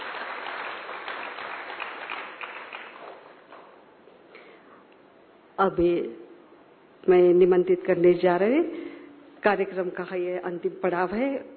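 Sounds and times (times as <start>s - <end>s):
audience applause: 0.0s - 3.7s
speech: 5.6s - 6.2s, 7.0s - 8.8s, 9.4s - 11.5s.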